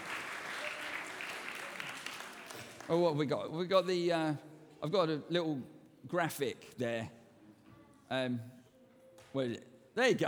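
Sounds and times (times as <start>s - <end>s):
audience applause: 0.0s - 3.0s
speech: 2.9s - 7.2s, 8.1s - 8.6s, 9.3s - 10.2s.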